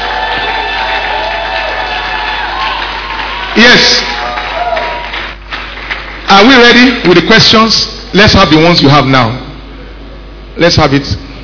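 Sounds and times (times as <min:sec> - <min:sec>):
cheering with whoops and shouts: 0:00.0 - 0:05.4
audience clapping: 0:00.0 - 0:07.1
speech: 0:03.6 - 0:04.2, 0:06.3 - 0:09.4, 0:10.6 - 0:11.3.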